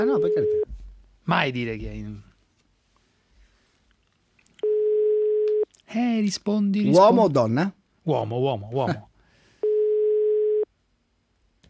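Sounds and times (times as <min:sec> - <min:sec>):
ringback tone of outgoing call to a mobile phone: 0:00.0 - 0:00.7, 0:04.6 - 0:05.6, 0:09.6 - 0:10.7
speech: 0:00.0 - 0:00.7, 0:01.3 - 0:02.3, 0:05.9 - 0:09.1.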